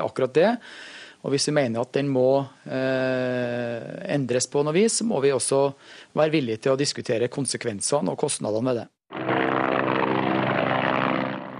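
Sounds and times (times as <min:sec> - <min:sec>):
speech: 0:00.0 - 0:09.4
military helicopter: 0:09.1 - 0:11.5.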